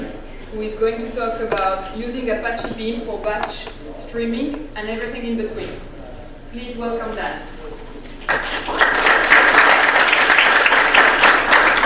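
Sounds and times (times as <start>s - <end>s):
speech: 0.5s - 5.9s, 6.5s - 7.5s
audience applause: 8.2s - 11.8s.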